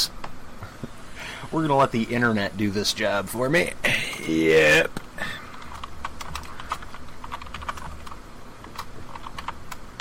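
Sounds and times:
low hum: 0.0 - 9.9
speech: 1.5 - 5.0
rapid typing on a computer keyboard: 5.5 - 9.9.

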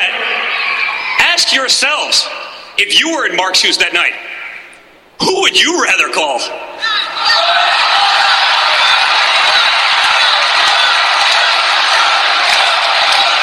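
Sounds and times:
crowd cheering on their feet: 0.1 - 1.4, 6.8 - 13.4
speech: 1.4 - 4.2, 5.2 - 7.4.

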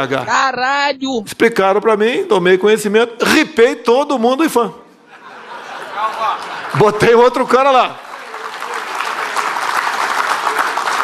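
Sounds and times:
speech: 0.0 - 4.8, 6.0 - 8.0
laughter: 5.0 - 7.3
audience applause: 5.8 - 11.0.

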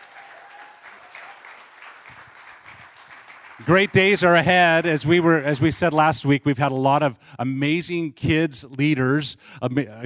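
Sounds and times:
audience applause: 0.0 - 5.6
speech: 3.6 - 10.0.

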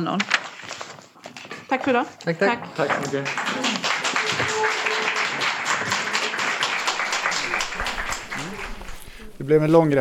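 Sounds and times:
speech: 0.0 - 0.8, 1.7 - 3.9, 9.5 - 9.9
crowd applauding in a courtroom: 3.0 - 9.4.

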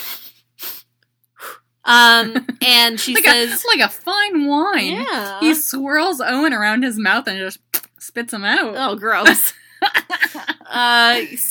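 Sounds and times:
person imitating sniffing: 0.0 - 1.7
speech: 1.9 - 9.6, 10.7 - 11.4.

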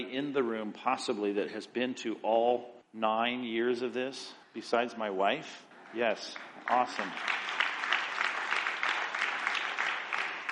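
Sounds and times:
speech: 0.1 - 7.6
smattering of applause: 5.8 - 10.5.

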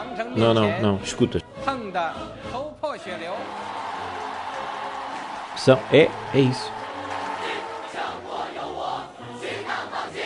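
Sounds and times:
speech: 0.2 - 3.9, 5.6 - 6.8
families cheering: 3.1 - 10.2.

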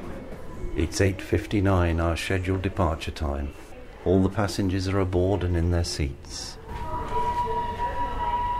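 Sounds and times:
speech: 0.8 - 6.6
steam train engine whistle: 6.8 - 8.5.

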